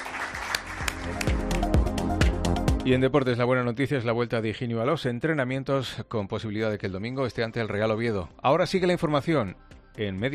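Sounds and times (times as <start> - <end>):
audience applause: 0.0 - 1.7
speech: 2.8 - 10.3.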